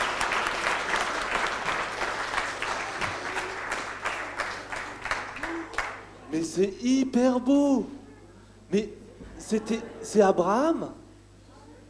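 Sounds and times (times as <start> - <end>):
applause: 0.0 - 6.2
speech: 6.4 - 8.0, 8.7 - 11.0.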